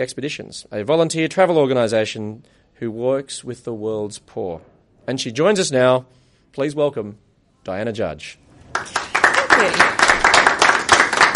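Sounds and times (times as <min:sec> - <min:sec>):
speech: 0:00.0 - 0:09.0
live studio audience applauding a guest: 0:08.7 - 0:11.3.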